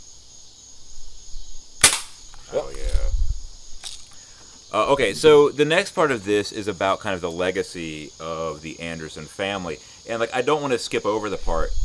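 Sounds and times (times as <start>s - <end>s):
Diet Coke can opening pop: 1.8s - 2.4s
speech: 4.7s - 11.8s.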